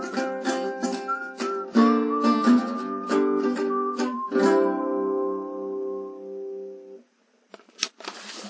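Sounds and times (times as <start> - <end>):
guitar playing sus4 and sus2 chords: 0.0 - 7.0.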